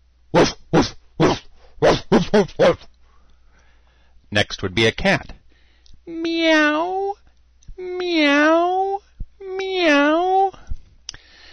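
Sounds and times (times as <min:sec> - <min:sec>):
person imitating a dog barking: 0:00.4 - 0:02.9, 0:07.8 - 0:10.6
speech: 0:02.3 - 0:02.9, 0:04.3 - 0:05.4, 0:06.1 - 0:07.1, 0:07.8 - 0:08.8, 0:09.8 - 0:10.2.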